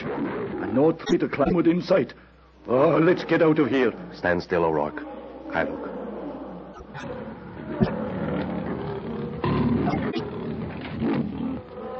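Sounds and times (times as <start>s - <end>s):
speech: 0.7s - 6.0s, 7.0s - 8.0s
lion growling and roaring: 5.5s - 11.9s.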